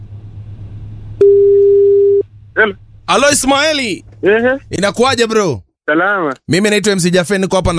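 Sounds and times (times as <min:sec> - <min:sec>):
telephone call tone for a live radio call: 0:01.2 - 0:02.2
speech: 0:02.6 - 0:07.7.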